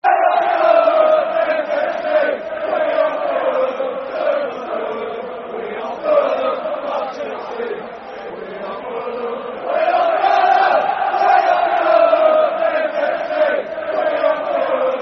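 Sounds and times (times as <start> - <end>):
football crowd chanting: 0.0 - 15.0.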